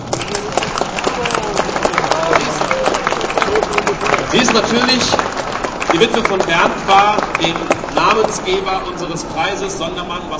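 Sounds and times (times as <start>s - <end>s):
faint voices and scattered cheers: 0.0s - 9.5s
audience applause: 0.0s - 10.2s
laughter: 0.0s - 10.3s
speech: 4.3s - 5.3s, 5.9s - 10.3s.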